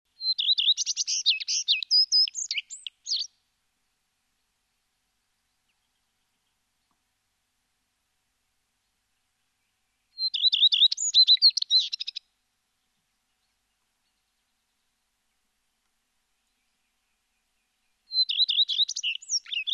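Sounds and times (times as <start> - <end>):
common redstart Phoenicurus phoenicurus singing: 0.1 - 3.4, 9.6 - 15.5, 16.4 - 19.7.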